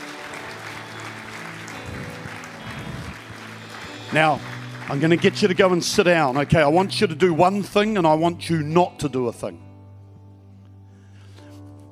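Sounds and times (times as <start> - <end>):
audience applause: 0.0 - 7.7
speech: 4.1 - 9.7.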